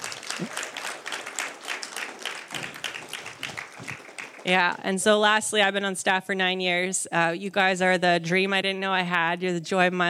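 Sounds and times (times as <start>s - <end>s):
audience applause: 0.0s - 4.8s
speech: 0.4s - 0.6s, 4.4s - 10.0s.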